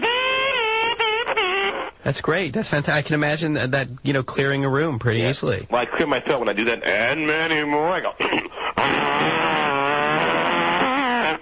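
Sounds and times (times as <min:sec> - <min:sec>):
voice imitating a jaw harp: 0:00.0 - 0:02.1, 0:08.7 - 0:11.4
speech: 0:02.0 - 0:09.5.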